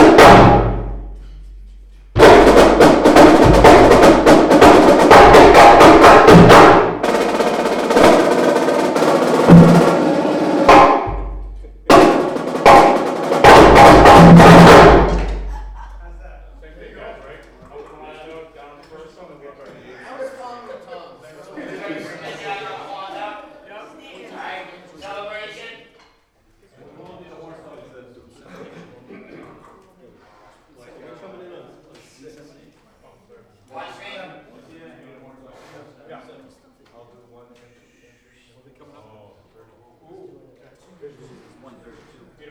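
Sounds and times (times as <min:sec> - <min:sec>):
drum solo in ensemble practice: 0:00.0 - 0:17.0
laughter: 0:15.1 - 0:18.0, 0:19.6 - 0:24.4, 0:28.3 - 0:29.6.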